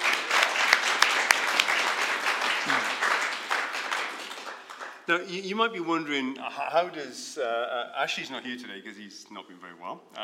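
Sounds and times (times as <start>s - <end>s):
crowd applauding: 0.0s - 5.2s
speech: 5.1s - 10.2s.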